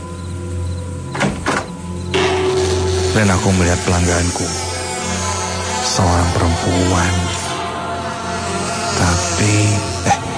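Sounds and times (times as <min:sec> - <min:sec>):
steady low hum: 0:00.0 - 0:10.3
door opening: 0:01.1 - 0:03.2
speech: 0:03.2 - 0:04.7, 0:05.9 - 0:07.4.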